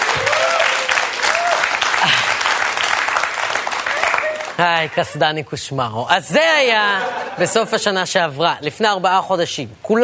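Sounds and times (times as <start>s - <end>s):
crowd applause: 0.0s - 4.9s
speech: 4.6s - 10.0s
laughter: 6.6s - 7.9s.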